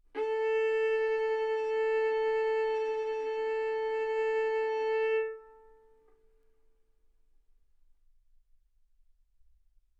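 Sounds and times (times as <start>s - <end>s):
violin bowed arco notes: 0.0s - 5.9s.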